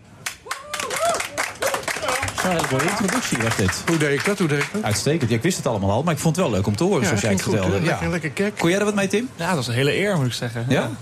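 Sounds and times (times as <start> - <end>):
audience applause: 0.2 - 5.4
people whooping and voices rising: 0.4 - 3.1
speech: 2.4 - 11.0.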